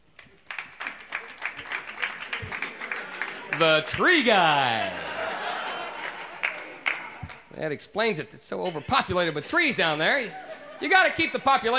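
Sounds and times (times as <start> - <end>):
small crowd scattered applause: 0.2 - 7.5
laughter: 1.2 - 7.5, 8.6 - 11.7
speech: 3.6 - 5.0, 7.6 - 11.7.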